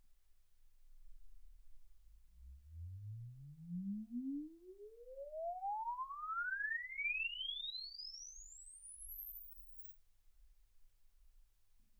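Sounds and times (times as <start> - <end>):
exponential sine sweep from 10 Hz to 24 kHz: 2.4 - 9.9.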